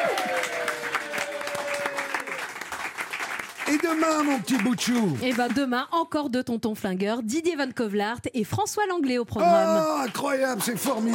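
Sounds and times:
audience applause: 0:00.0 - 0:05.7, 0:09.4 - 0:11.1
speech: 0:03.7 - 0:11.1.

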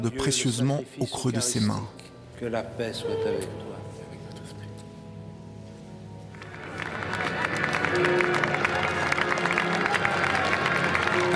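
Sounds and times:
speech: 0:00.0 - 0:03.7
church audience applauding, ovation: 0:06.3 - 0:11.3.

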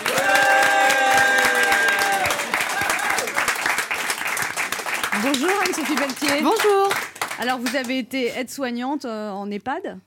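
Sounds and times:
audience applause: 0:00.0 - 0:07.8
speech: 0:05.2 - 0:10.0.

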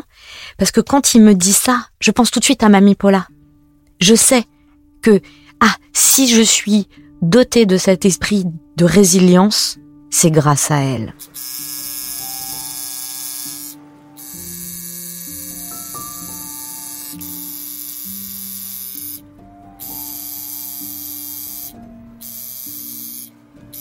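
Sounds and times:
speech: 0:00.2 - 0:03.4, 0:04.0 - 0:11.6
tattoo machine needle buzzing: 0:11.2 - 0:23.8.

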